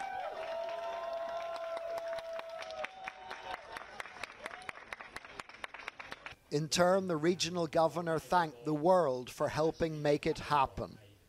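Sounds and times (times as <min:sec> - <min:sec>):
applause at a news conference: 0:00.0 - 0:06.4
speech: 0:06.5 - 0:11.0.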